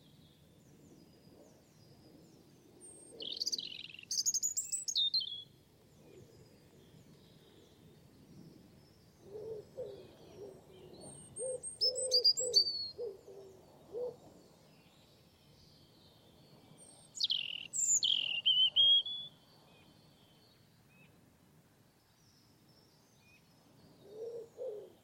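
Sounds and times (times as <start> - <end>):
European robin singing: 2.8 - 5.5, 9.8 - 14.1, 15.6 - 21.0.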